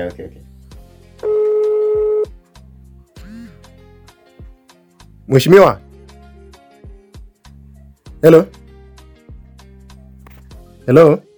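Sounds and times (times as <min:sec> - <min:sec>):
speech: 0:00.0 - 0:00.5, 0:05.3 - 0:05.8, 0:08.2 - 0:08.6, 0:10.9 - 0:11.3
telephone dialing beeps: 0:01.2 - 0:02.3.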